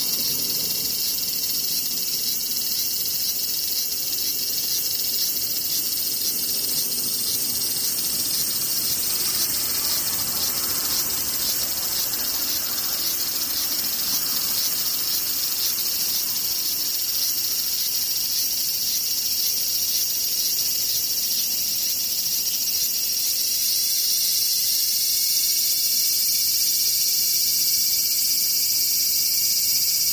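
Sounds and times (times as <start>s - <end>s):
cicadas droning: 0.0s - 30.1s
soft rushing swell: 5.4s - 16.1s.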